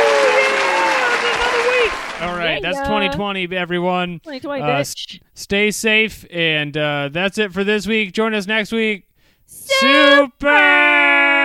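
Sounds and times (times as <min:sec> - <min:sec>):
applause: 0:00.0 - 0:02.8
speech: 0:02.2 - 0:11.2.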